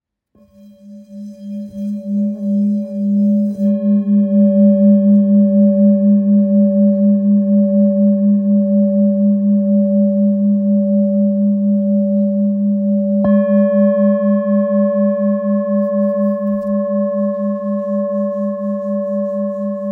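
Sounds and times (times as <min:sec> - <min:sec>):
old bowl ringing in G: 0:00.4 - 0:19.9.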